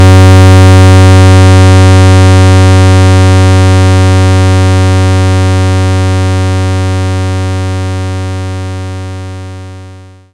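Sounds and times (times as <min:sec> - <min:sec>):
75 Hz pulse tone: 0:00.0 - 0:07.8.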